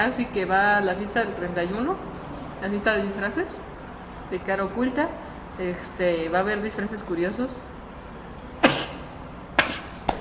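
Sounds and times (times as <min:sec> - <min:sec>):
speech: 0:00.0 - 0:03.7, 0:04.3 - 0:07.7
sneeze or cough: 0:08.6 - 0:10.0.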